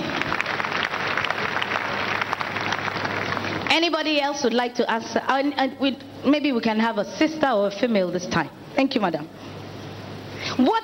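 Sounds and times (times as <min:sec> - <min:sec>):
audience clapping: 0:00.0 - 0:03.8
speech: 0:03.8 - 0:09.6, 0:10.6 - 0:10.8.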